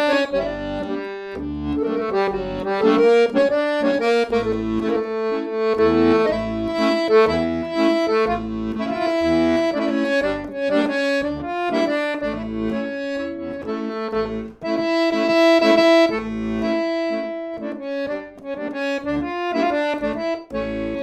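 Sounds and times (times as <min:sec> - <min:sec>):
klezmer music: 0:00.0 - 0:21.0.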